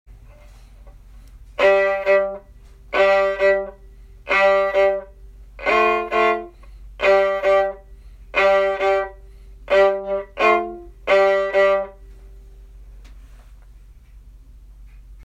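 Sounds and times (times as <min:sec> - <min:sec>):
jig groove on fiddle: 0:00.2 - 0:12.2.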